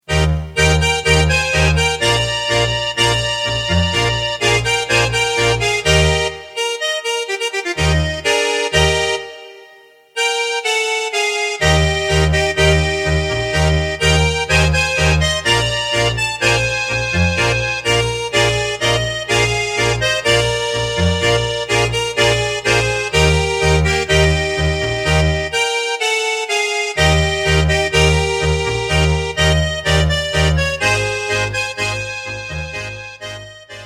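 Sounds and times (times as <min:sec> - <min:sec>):
tango music: 0:00.0 - 0:09.6, 0:10.2 - 0:33.8.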